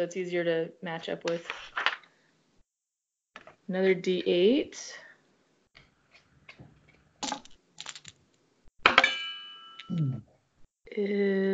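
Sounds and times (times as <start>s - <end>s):
speech: 0.0s - 1.9s, 3.7s - 5.0s, 9.9s - 10.3s, 10.9s - 11.5s
dice striking a metal thermos: 7.2s - 8.1s.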